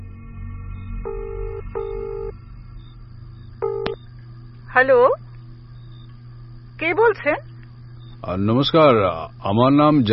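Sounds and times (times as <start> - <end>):
low hum: 0.0 - 10.1
telephone tones as a call is placed: 1.0 - 2.4, 3.6 - 4.0
speech: 4.8 - 5.2, 6.8 - 7.5, 8.2 - 10.1.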